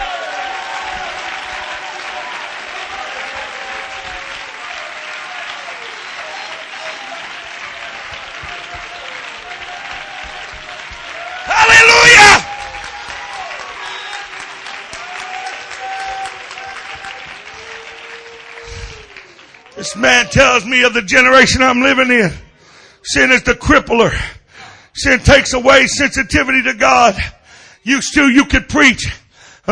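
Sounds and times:
audience clapping hands: 0.0 - 21.3
speech: 19.9 - 22.4, 23.0 - 24.4, 25.0 - 29.7.

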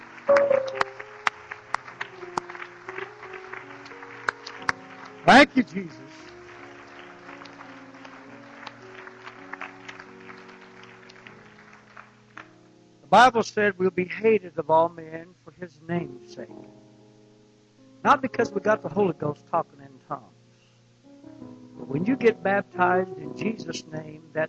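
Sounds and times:
audience hand clapping: 0.0 - 12.6
speech: 5.3 - 6.2, 13.1 - 16.8, 18.0 - 20.3, 21.9 - 24.4.

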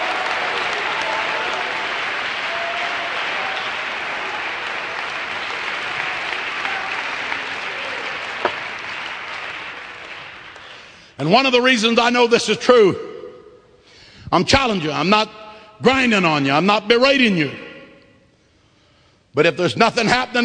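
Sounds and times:
audience clapping: 0.0 - 11.2
speech: 11.2 - 13.1, 14.3 - 17.6, 19.4 - 20.4.

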